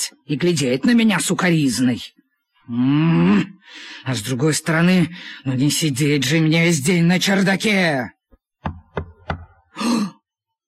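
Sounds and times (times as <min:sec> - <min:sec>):
speech: 0:00.0 - 0:08.8
knocking on a door: 0:08.6 - 0:09.6.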